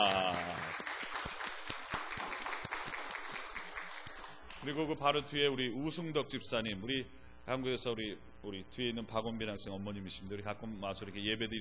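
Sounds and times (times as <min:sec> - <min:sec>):
crowd applause: 0:00.0 - 0:04.7
speech: 0:04.6 - 0:11.5.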